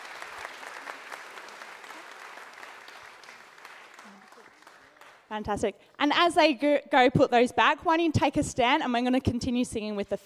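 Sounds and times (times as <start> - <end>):
crowd clapping: 0.0 - 5.5
speech: 5.3 - 10.2.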